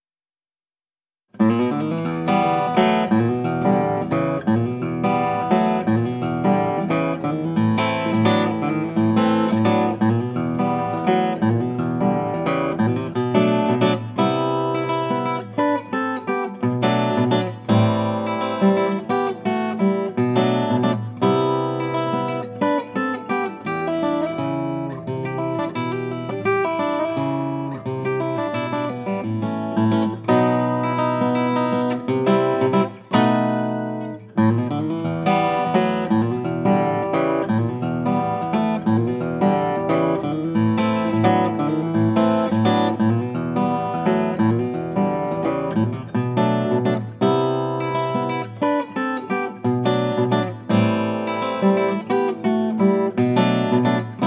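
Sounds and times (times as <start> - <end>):
blues music: 1.4 - 54.2.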